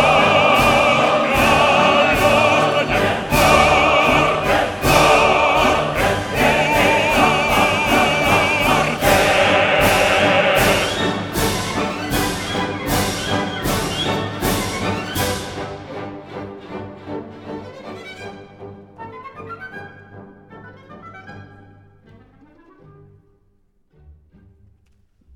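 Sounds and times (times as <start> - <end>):
choir singing: 0.0 - 17.6.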